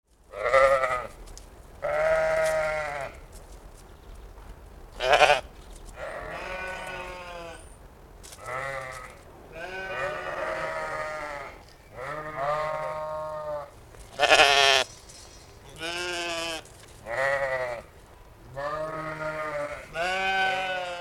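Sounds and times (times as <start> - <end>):
East Friesian sheep: 0.3 - 1.1, 1.8 - 3.2, 5.0 - 7.7, 8.4 - 14.8, 15.7 - 17.9, 18.5 - 20.9.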